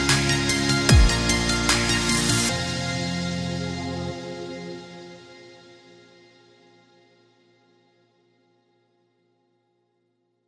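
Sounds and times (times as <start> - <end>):
future dubstep music: 0.0 - 5.4.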